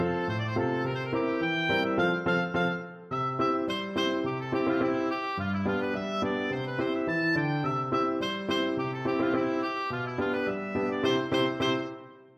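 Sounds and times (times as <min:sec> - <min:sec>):
oboe playing a holiday schottisch: 0:00.0 - 0:12.3.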